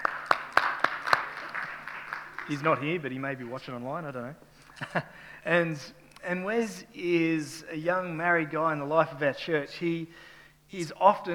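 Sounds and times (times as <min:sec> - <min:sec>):
audience clapping: 0:00.0 - 0:03.1
speech: 0:02.5 - 0:11.3.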